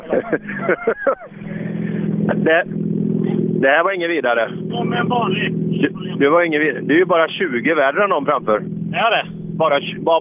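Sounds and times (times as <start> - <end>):
laughter: 0.0 - 2.6
car engine accelerating: 0.0 - 10.1
speech: 0.1 - 1.7, 2.3 - 10.1.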